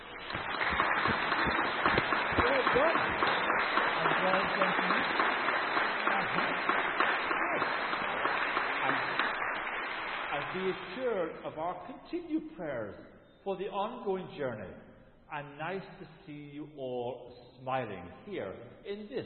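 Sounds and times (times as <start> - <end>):
round of applause: 0.0 - 11.3
speech: 10.6 - 19.2.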